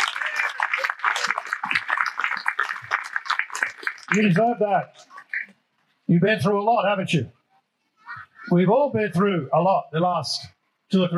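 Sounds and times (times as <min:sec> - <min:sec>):
audience applause: 0:00.0 - 0:05.5
speech: 0:04.1 - 0:05.0, 0:06.1 - 0:07.4, 0:08.5 - 0:11.1.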